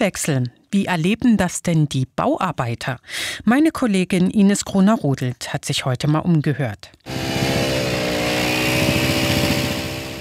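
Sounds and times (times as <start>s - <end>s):
speech: 0.0s - 7.2s
vibrating plate compactor running: 7.1s - 10.2s.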